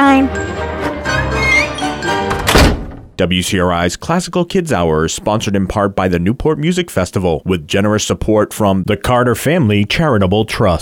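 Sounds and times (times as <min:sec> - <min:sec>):
concert hall door closing: 0:01.1 - 0:03.2
speech: 0:03.2 - 0:10.7.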